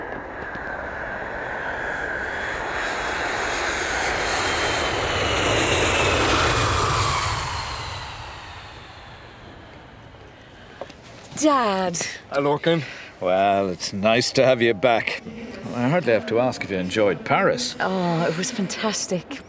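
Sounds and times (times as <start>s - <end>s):
aircraft engine roaring in flight: 0.0s - 11.0s, 14.9s - 19.4s
speech: 11.4s - 19.4s.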